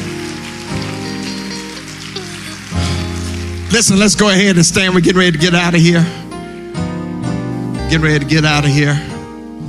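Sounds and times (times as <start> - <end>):
crowd cheering and clapping: 0.0 - 5.2
speech: 3.7 - 6.2, 7.9 - 9.1.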